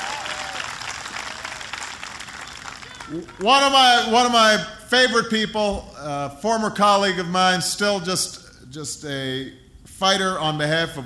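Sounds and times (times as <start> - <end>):
large crowd applauding: 0.0 - 4.1
speech: 3.1 - 11.0.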